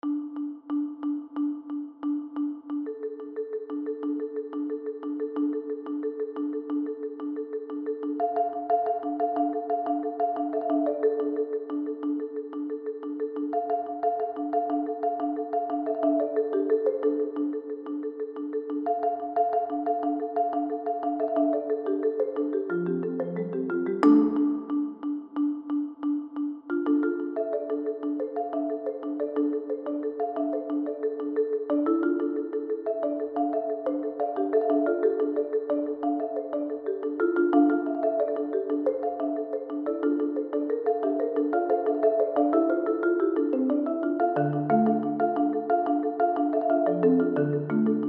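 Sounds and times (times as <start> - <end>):
marimba: 0.0 - 48.0.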